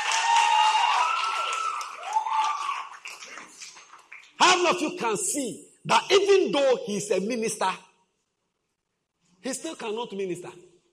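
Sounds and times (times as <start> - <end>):
audience clapping: 0.0 - 4.8
speech: 4.6 - 7.9, 9.4 - 10.7.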